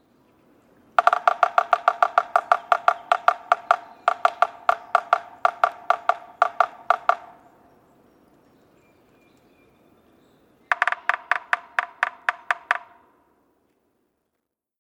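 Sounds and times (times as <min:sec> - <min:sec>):
Yellow-bellied Sapsucker giving nasal downslurred mewing calls: 0:01.0 - 0:07.6, 0:10.7 - 0:13.2.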